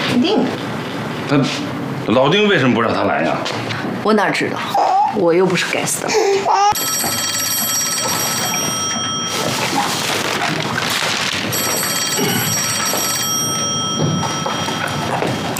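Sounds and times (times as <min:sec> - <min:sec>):
speech: 0:00.2 - 0:00.6, 0:01.3 - 0:07.4
telephone ringing: 0:06.7 - 0:15.5.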